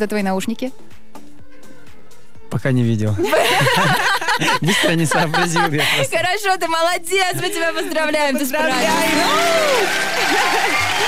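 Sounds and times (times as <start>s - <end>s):
speech: 0.0s - 1.0s, 2.5s - 11.0s
laughter: 3.2s - 6.4s, 7.3s - 11.0s
applause for a quiz winner on a radio show: 8.6s - 11.0s.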